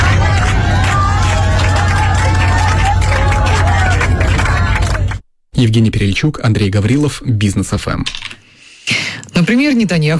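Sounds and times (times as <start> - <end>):
passengers singing after plane landing: 0.0 - 4.7
low engine hum: 0.0 - 5.2
passengers applauding after plane landing: 0.0 - 5.2
speech: 5.6 - 8.4, 9.4 - 10.1.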